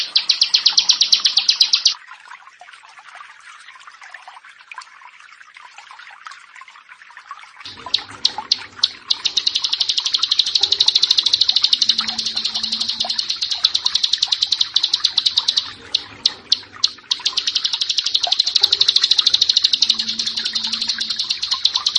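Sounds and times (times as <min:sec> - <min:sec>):
bar-winged prinia song: 0:00.0 - 0:02.0, 0:07.7 - 0:21.9.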